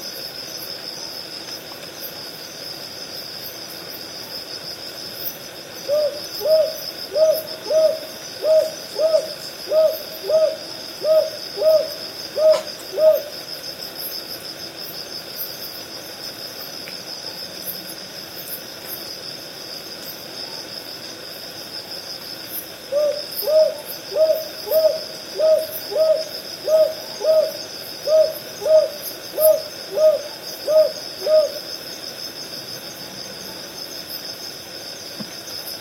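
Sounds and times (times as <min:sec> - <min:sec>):
insects humming: 0:00.0 - 0:35.8
northern boobook hooting in pairs: 0:05.8 - 0:13.3, 0:22.9 - 0:31.6.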